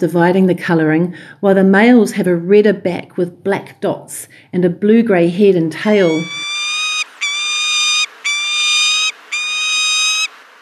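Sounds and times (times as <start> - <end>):
speech: 0.0 - 6.7
kestrel alarm cries: 5.9 - 10.5.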